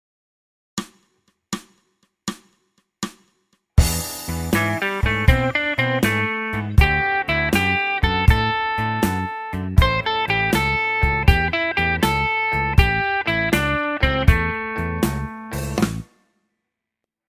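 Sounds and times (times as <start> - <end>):
blues music: 3.8 - 16.1.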